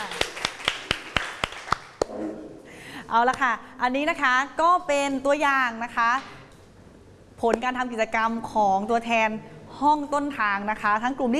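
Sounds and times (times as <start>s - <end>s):
audience clapping for a group: 0.0s - 2.1s
speech: 3.1s - 6.4s, 7.4s - 11.3s.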